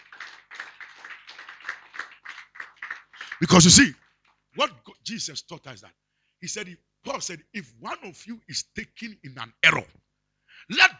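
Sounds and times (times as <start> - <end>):
audience clapping: 0.0 - 4.4
speech: 3.4 - 4.0, 4.6 - 10.0, 10.7 - 10.9.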